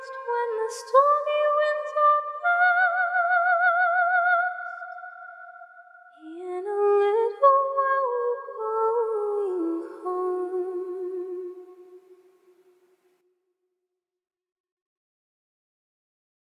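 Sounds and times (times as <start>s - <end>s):
a cappella hymn singing: 0.0s - 5.2s, 6.2s - 11.8s.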